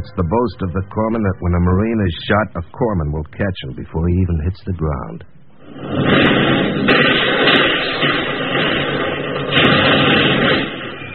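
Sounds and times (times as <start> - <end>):
speech: 0.0 - 7.1
artillery shells exploding in a war film: 5.6 - 11.1.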